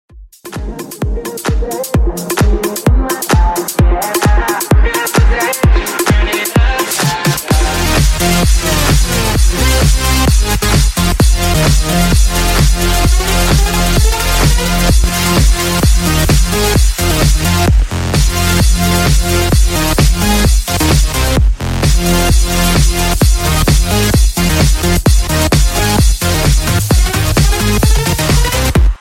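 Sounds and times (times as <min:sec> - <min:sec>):
Apple iTunes remix music: 0:00.2 - 0:29.0.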